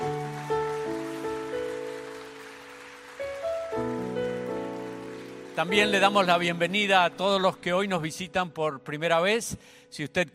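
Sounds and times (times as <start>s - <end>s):
audience applauding: 0.0s - 7.5s
organ-like chords: 3.6s - 9.1s
speech: 5.6s - 10.3s.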